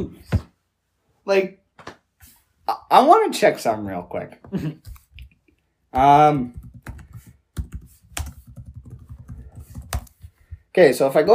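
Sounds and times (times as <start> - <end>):
speech: 0.0 - 0.4, 1.3 - 1.9, 2.7 - 5.0, 5.9 - 7.0, 10.8 - 11.3
typing on a computer keyboard: 6.4 - 10.3.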